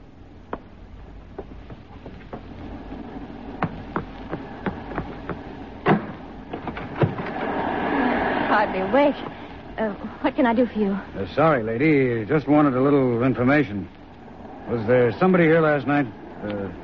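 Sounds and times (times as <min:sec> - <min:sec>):
front door being opened: 0:01.8 - 0:07.6
speech: 0:08.6 - 0:14.0, 0:14.7 - 0:16.8.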